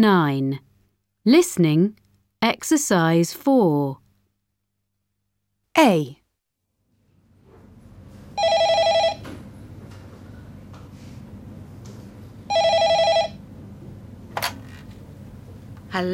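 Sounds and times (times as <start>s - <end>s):
speech: 0.0s - 4.0s, 5.8s - 6.2s, 15.9s - 16.1s
telephone ringing with electronic trill: 8.4s - 9.4s, 12.5s - 13.5s.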